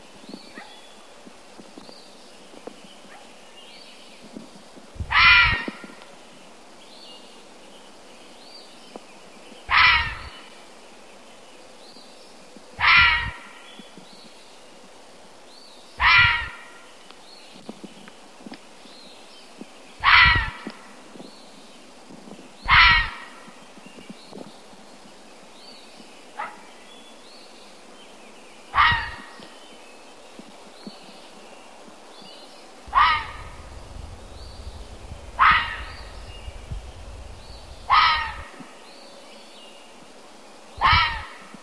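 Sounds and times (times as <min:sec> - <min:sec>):
animal: 0:05.1 - 0:06.0, 0:09.7 - 0:10.5, 0:12.8 - 0:13.9, 0:16.0 - 0:16.8, 0:20.0 - 0:20.9, 0:22.6 - 0:23.5, 0:28.7 - 0:29.5, 0:32.9 - 0:38.9, 0:40.8 - 0:41.6.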